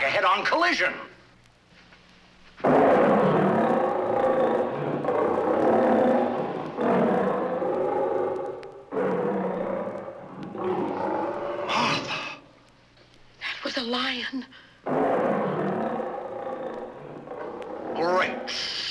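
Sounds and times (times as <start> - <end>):
speech: 0.2 - 1.1, 13.8 - 14.6
lions roaring: 2.6 - 12.4, 14.9 - 18.7.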